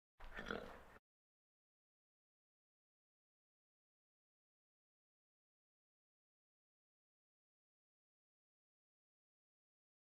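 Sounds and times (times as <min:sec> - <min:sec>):
farm animal snorts: 0:00.2 - 0:01.0.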